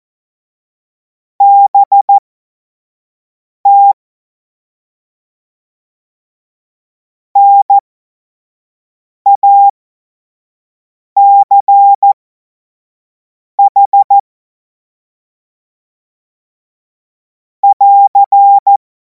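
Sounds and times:
CW Morse code beeps: 1.4s - 2.1s, 3.7s - 4.0s, 7.4s - 7.8s, 9.3s - 9.7s, 11.2s - 12.2s, 13.6s - 14.2s, 17.6s - 18.8s.

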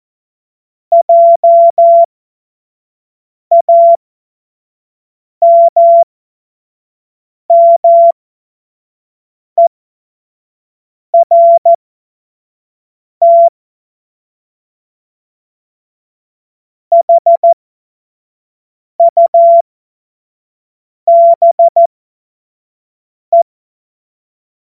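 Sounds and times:
Morse code course tones: 0.9s - 2.1s, 5.4s - 6.0s, 7.5s - 8.1s, 11.2s - 11.8s, 13.2s - 13.5s, 16.9s - 17.6s, 19.0s - 19.6s, 21.1s - 21.9s.

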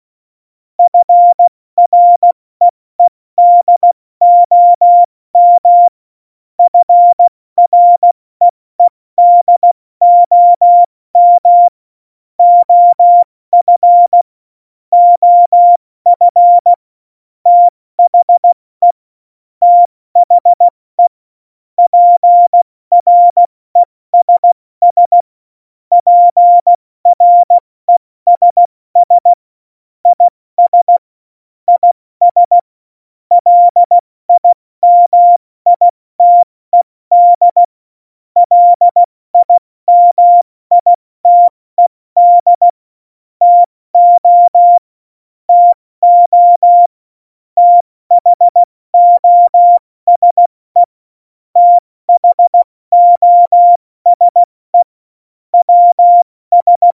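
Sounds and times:
CW Morse code at tempo 70: 0.8s - 2.3s, 3.4s - 5.9s, 6.6s - 8.1s, 8.8s - 11.7s, 12.4s - 14.2s, 15.0s - 16.8s, 17.5s - 19.0s, 19.6s - 21.1s, 21.9s - 25.2s, 25.9s - 27.6s, 28.3s - 29.4s, 30.1s - 31.0s, 31.7s - 32.6s, 33.3s - 36.5s, 37.1s - 37.7s, 38.4s - 42.8s, 43.4s - 44.8s, 45.5s - 46.9s, 47.6s - 50.9s, 51.6s - 54.9s, 55.6s - 56.9s.

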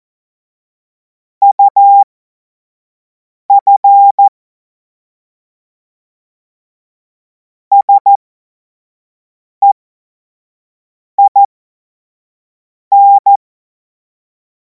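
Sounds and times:
Morse code course tones: 1.4s - 2.1s, 3.5s - 4.3s, 7.8s - 8.2s, 12.9s - 13.4s.

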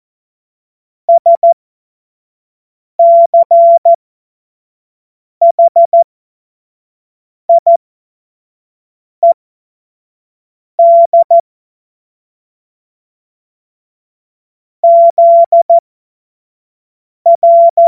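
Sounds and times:
CW Morse code beeps: 1.1s - 1.6s, 3.0s - 4.0s, 5.4s - 6.0s, 7.5s - 7.8s, 10.8s - 11.4s, 14.8s - 15.8s, 17.3s - 17.8s.

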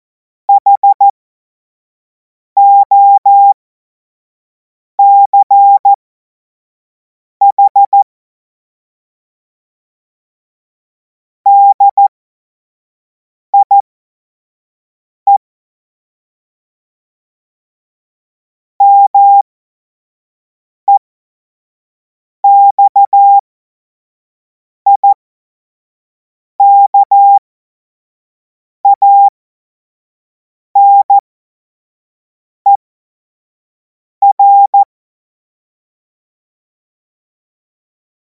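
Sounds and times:
morse code beeps: 0.5s - 1.1s, 2.6s - 3.6s, 5.0s - 5.9s, 7.4s - 8.0s, 11.5s - 12.0s, 13.6s - 13.8s, 18.8s - 19.4s, 22.4s - 23.4s, 24.9s - 25.2s, 26.6s - 27.4s, 28.8s - 29.3s, 30.8s - 31.2s, 34.2s - 34.9s.

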